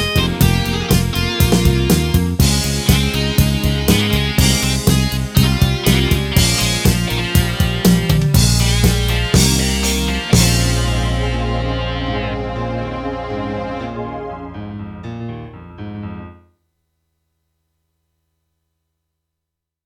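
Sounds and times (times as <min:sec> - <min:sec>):
slow rock solo guitar: 0:00.0 - 0:14.8.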